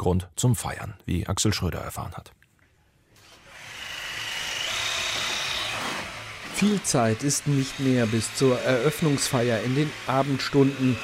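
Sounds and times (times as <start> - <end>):
speech: 0.0 - 2.4, 6.6 - 11.0
power tool whirring during building work in a historic building complex: 3.2 - 11.0.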